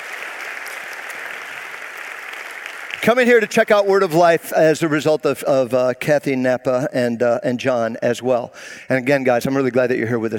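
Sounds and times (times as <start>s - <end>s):
audience applause: 0.0s - 3.7s
speech: 3.0s - 10.3s.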